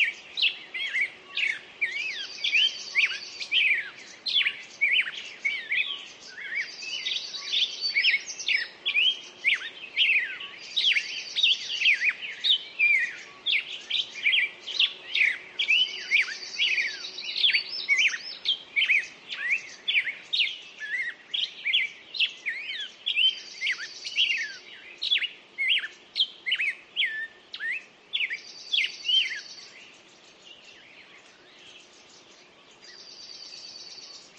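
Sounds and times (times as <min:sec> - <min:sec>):
birds singing at dawn: 0:00.0 - 0:34.3.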